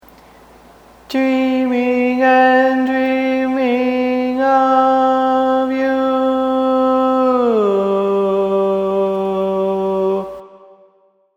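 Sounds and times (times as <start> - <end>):
barbershop baritone singing: 1.1 - 10.4.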